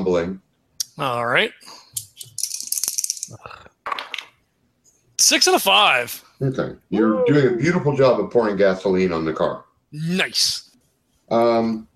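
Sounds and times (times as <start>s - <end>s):
speech: 0.1s - 0.4s, 1.0s - 1.8s, 3.3s - 3.7s, 5.2s - 10.6s, 11.3s - 11.9s
dice rattling: 2.2s - 3.3s.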